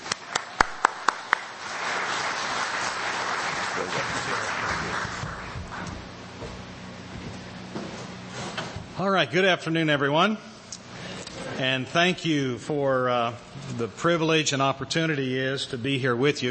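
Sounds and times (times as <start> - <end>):
audience applause welcoming a speaker: 0.0 - 6.1
speech: 9.0 - 10.5, 11.6 - 16.5.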